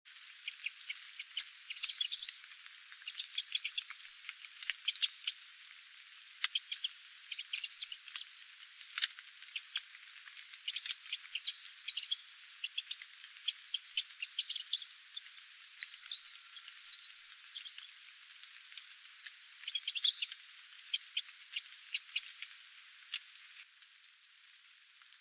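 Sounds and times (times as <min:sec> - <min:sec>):
Eurasian wren singing: 0:00.5 - 0:05.5, 0:06.5 - 0:08.2, 0:09.5 - 0:10.0, 0:10.6 - 0:18.1, 0:19.7 - 0:22.3.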